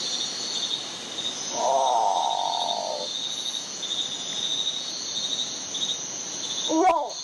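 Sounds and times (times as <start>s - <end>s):
steady shrill chorus of insects: 0.0s - 7.2s
great potoo harsh guttural moaning growl: 1.5s - 3.1s.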